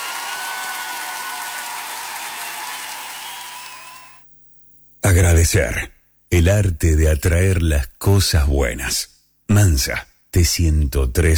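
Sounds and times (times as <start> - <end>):
applause for the guests: 0.0 - 4.2
speech: 5.1 - 11.3.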